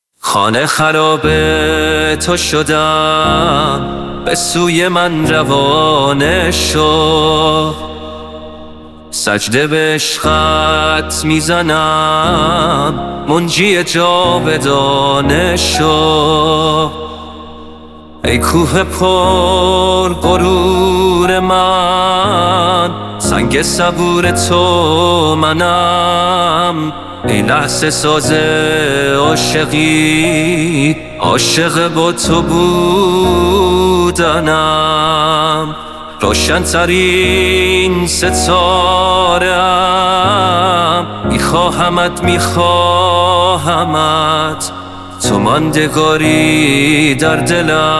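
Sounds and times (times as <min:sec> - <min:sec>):
piano music: 0:00.9 - 0:47.9.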